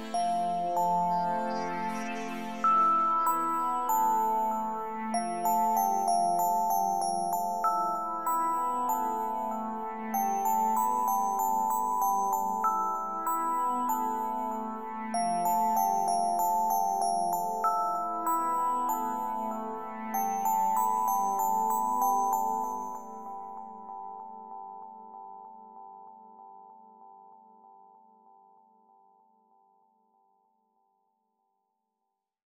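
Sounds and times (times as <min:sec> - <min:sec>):
MIDI bells: 0:00.1 - 0:25.8.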